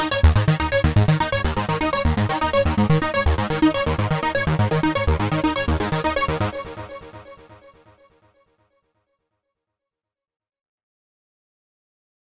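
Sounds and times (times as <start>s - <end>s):
dry synth arpeggio: 0.0s - 7.2s.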